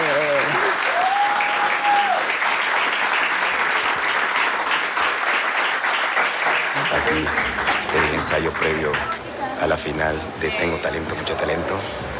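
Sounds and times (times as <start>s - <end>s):
audience applause: 0.0s - 9.2s
speech: 8.3s - 12.1s.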